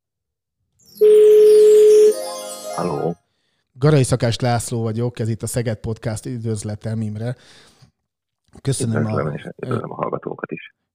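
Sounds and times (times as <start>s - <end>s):
phone call ringing tone: 1.0s - 3.2s
speech: 3.8s - 7.8s, 8.5s - 10.8s.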